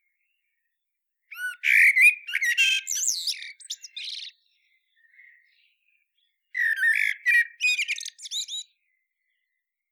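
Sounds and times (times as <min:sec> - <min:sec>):
common blackbird singing: 0:01.3 - 0:08.7.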